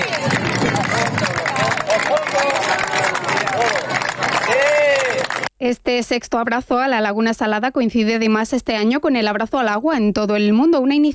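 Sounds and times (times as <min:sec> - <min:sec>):
crowd applauding at outdoor rally: 0:00.0 - 0:05.5
speech: 0:05.6 - 0:11.1.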